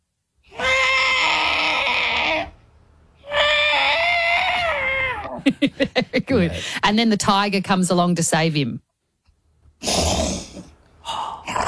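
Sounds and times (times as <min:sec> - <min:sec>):
voice imitating an elephant trumpeting for help: 0:00.5 - 0:02.6, 0:03.2 - 0:05.4
speech: 0:05.5 - 0:08.9.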